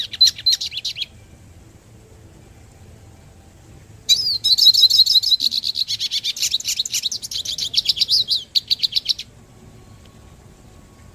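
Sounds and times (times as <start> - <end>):
hooded siskin singing: 0.0 - 11.1.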